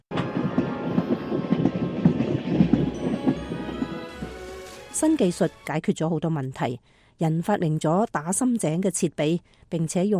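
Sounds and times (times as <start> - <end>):
train wheels clacking on railway tracks: 0.1 - 5.4
speech: 5.0 - 10.1.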